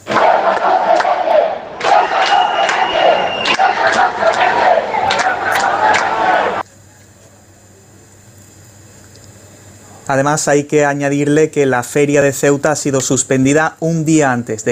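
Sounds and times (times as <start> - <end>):
large crowd shouting in protest: 0.0 - 6.6
speech: 10.1 - 14.7.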